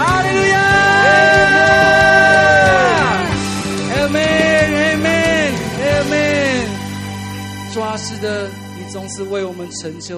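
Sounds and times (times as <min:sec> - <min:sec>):
audience cheering: 0:00.0 - 0:06.9
speech: 0:09.0 - 0:10.1.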